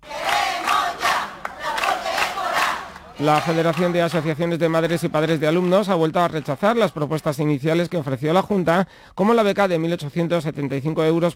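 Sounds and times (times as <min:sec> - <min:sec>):
protest crowd chanting in unison: 0:00.0 - 0:04.3
speech: 0:03.2 - 0:11.3.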